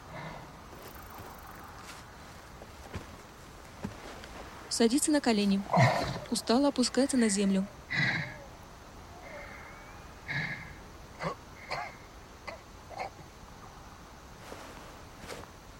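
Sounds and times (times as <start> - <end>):
low steady hiss: 0.0 - 15.7
speech: 4.8 - 7.8
rough coughing: 11.2 - 13.2.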